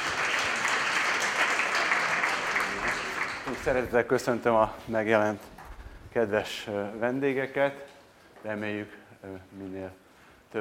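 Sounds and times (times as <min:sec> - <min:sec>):
steady audience applause: 0:00.0 - 0:04.0
speech: 0:03.6 - 0:10.5.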